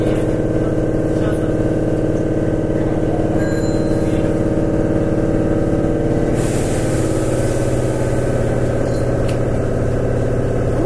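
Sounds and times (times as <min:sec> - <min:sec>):
express train on the Takarazuka Line running: 0:00.0 - 0:10.8
hiss: 0:06.3 - 0:08.5.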